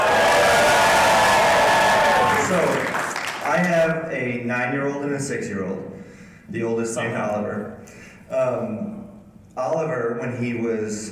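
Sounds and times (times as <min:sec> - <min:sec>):
live audience cheering and making noise: 0:00.0 - 0:03.8
speech: 0:04.2 - 0:09.0, 0:09.6 - 0:11.1.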